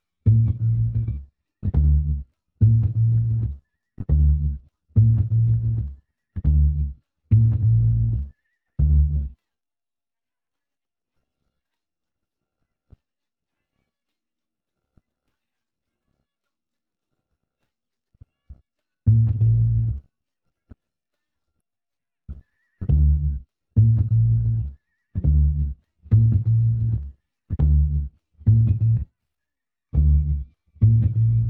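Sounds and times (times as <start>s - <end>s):
bass: 0.2s - 9.4s, 19.1s - 20.1s, 22.3s - 29.1s, 29.9s - 31.4s.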